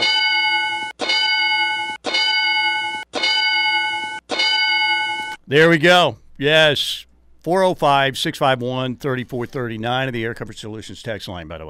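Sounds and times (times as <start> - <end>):
mule shoe sound effect, ding-like clang: 0.0 - 5.4
speech: 5.5 - 11.6.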